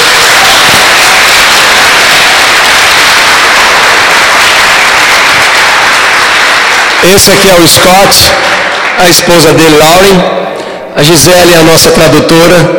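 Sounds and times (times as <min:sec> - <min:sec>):
audience applause: 0:00.0 - 0:10.0
speech: 0:07.0 - 0:10.4, 0:11.0 - 0:12.7.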